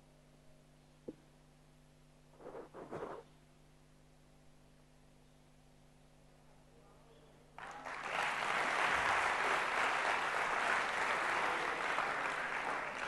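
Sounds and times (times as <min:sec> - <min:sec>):
audience clapping loudly: 0:07.6 - 0:13.0.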